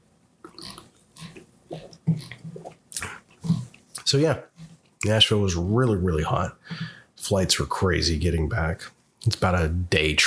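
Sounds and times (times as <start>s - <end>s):
person sipping Canada Dry fizzy soda: 0.4s - 4.0s
gulping swallows: 0.5s - 4.0s
speech: 4.1s - 10.2s.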